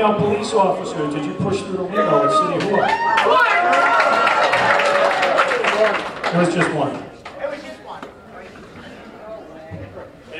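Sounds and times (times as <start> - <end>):
speech: 0.0 - 3.9, 5.9 - 7.1
crowd booing a speaker at a public forum: 1.9 - 5.9.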